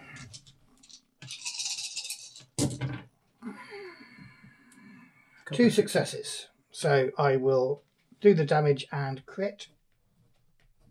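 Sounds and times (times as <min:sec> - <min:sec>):
dice rattling in a hand: 0:00.2 - 0:02.4
dice clattering onto a hard surface: 0:00.2 - 0:02.8
speech: 0:05.5 - 0:09.8.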